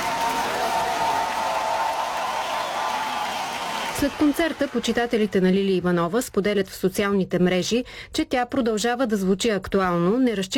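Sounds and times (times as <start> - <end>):
concert audience applause: 0.0 - 5.8
speech: 4.0 - 10.5.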